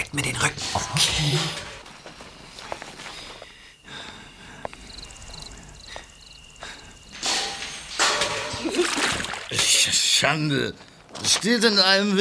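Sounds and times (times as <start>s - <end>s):
scuffling footsteps: 0.2s - 3.6s
water splashing from knocked-over rain barrel: 8.3s - 9.9s
speech: 10.3s - 12.1s.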